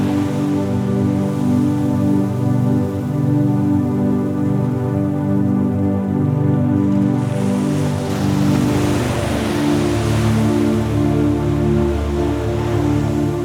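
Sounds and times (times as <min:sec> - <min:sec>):
ocean waves: 0:00.0 - 0:13.4
sleep music: 0:00.0 - 0:13.4.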